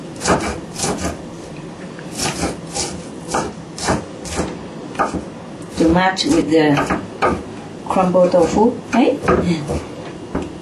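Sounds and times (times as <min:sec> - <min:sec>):
knife chopping food finely during cooking prep: 0:00.2 - 0:01.2, 0:02.1 - 0:07.5, 0:08.3 - 0:09.9
speech: 0:05.8 - 0:09.9.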